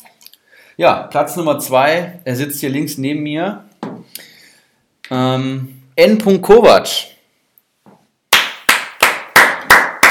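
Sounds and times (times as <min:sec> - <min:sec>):
speech: 0:00.8 - 0:03.7, 0:05.1 - 0:07.1
single pair of hands clapping: 0:08.3 - 0:10.0.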